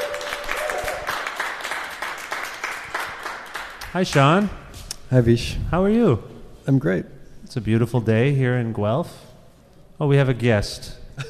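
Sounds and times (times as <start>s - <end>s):
audience round of applause: 0.0s - 4.2s
speech: 3.9s - 9.3s, 10.0s - 11.0s.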